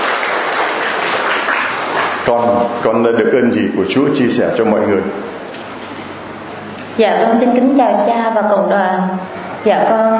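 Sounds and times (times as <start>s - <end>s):
audience applause: 0.0s - 2.3s
speech: 2.3s - 5.3s, 7.0s - 10.1s.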